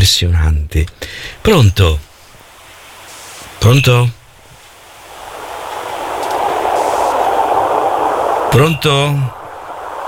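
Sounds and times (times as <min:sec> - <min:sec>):
speech: 0:00.0 - 0:02.1, 0:03.6 - 0:04.2, 0:08.5 - 0:09.4
train passing heard over a phone line: 0:04.7 - 0:10.0.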